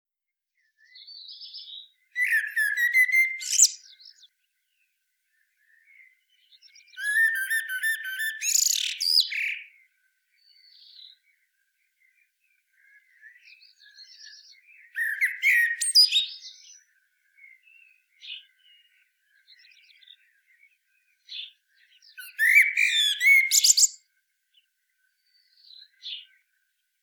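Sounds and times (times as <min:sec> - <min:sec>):
common blackbird harsh chattering calls: 0:02.2 - 0:03.8, 0:07.0 - 0:09.5, 0:22.2 - 0:24.0.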